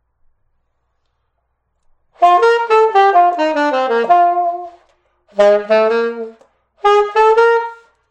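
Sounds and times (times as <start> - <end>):
saxophone: 2.2 - 8.0.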